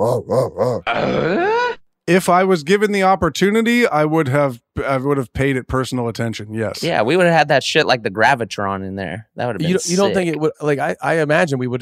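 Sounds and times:
voice imitating a motor revving up: 0.0s - 1.5s
speech: 0.0s - 11.8s.

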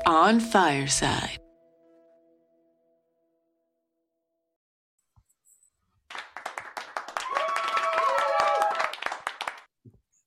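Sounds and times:
speech: 0.1s - 1.4s
applause: 6.1s - 9.7s.

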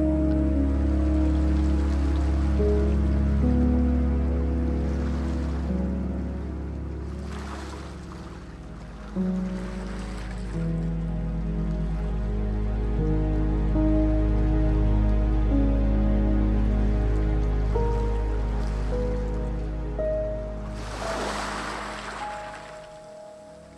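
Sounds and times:
deep steady low drone: 0.0s - 23.7s
gentle piano playing slow sustained chords: 0.0s - 23.7s
soft ocean washes: 0.0s - 23.7s.

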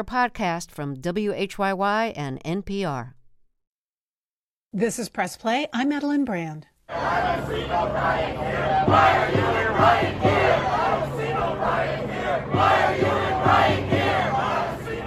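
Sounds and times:
speech: 0.0s - 3.2s, 4.7s - 13.8s
protest crowd chanting: 6.9s - 15.0s.

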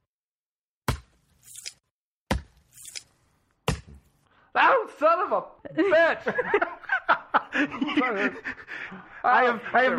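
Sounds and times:
knife chopping intestines on a cutting board: 2.3s - 3.0s
speech: 4.6s - 6.8s, 7.6s - 9.9s
laughter: 5.6s - 9.9s.

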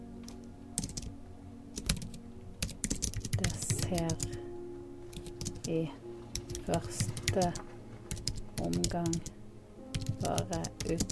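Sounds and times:
typing on a computer keyboard: 0.8s - 1.2s, 1.8s - 4.4s, 5.1s - 9.3s, 9.9s - 11.1s
speech: 3.9s - 4.4s, 5.7s - 6.0s, 6.7s - 7.7s, 8.6s - 9.4s, 10.2s - 11.1s.

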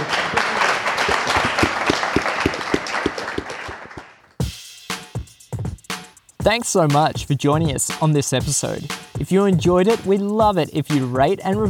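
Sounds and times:
audience applause: 0.0s - 4.3s
speech: 6.5s - 11.6s.

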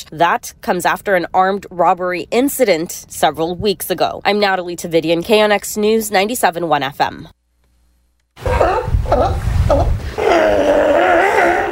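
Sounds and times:
speech: 0.0s - 7.4s, 8.4s - 10.7s
sick sea lions vocalizing: 8.4s - 11.7s.

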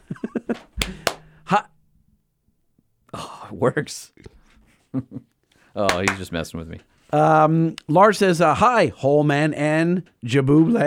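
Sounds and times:
sharp hand claps to trigger a clapper: 0.8s - 1.3s, 5.8s - 6.4s
speech: 1.5s - 1.7s, 3.1s - 10.8s.

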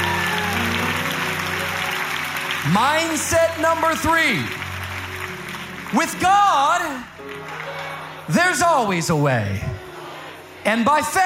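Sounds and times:
crowd clapping hands: 0.0s - 9.0s
speech: 2.6s - 4.6s, 5.9s - 7.1s, 8.3s - 9.7s, 10.6s - 11.2s.

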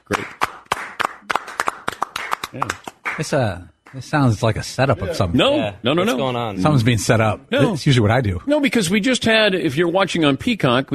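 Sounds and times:
round of applause, hand clapping: 0.0s - 4.0s
speech: 2.5s - 10.9s.

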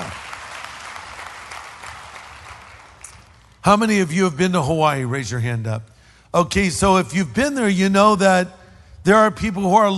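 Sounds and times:
large crowd applause in a church: 0.0s - 3.3s
speech: 3.6s - 9.9s.

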